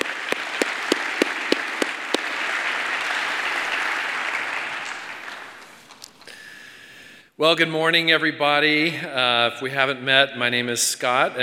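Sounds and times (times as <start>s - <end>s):
audience applause: 0.0s - 6.2s
speech: 7.4s - 11.4s.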